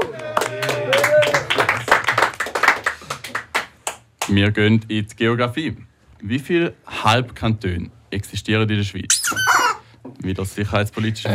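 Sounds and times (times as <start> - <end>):
applause: 0.0 - 4.4
speech: 4.3 - 9.4, 10.1 - 11.3.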